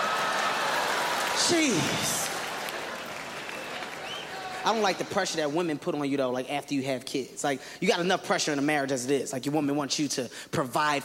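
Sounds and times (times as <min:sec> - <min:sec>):
audience clapping hands: 0:00.0 - 0:05.5
speech: 0:01.5 - 0:02.2, 0:04.6 - 0:11.0.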